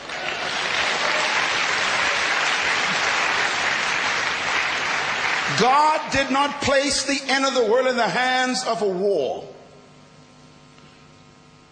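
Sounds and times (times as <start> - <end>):
loud sustained applause from a large audience: 0.0 - 6.3
speech: 5.6 - 9.6.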